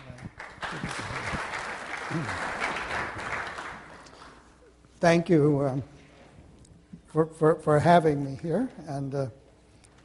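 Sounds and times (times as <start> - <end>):
audience applause welcoming a speaker to the stage: 0.0 - 4.4
speech: 2.1 - 2.6, 5.0 - 6.0, 7.1 - 9.4.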